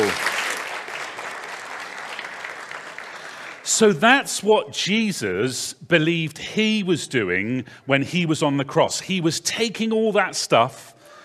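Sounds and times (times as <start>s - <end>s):
crowd round of applause: 0.0s - 3.6s
speech: 3.8s - 11.0s.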